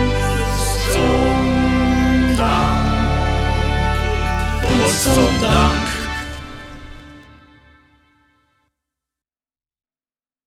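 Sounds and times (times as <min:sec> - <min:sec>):
voices singing a finale: 0:00.0 - 0:07.0.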